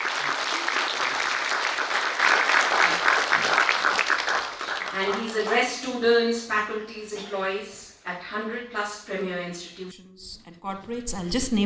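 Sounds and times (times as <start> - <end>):
audience applause: 0.0 - 5.7
speech: 5.0 - 11.6.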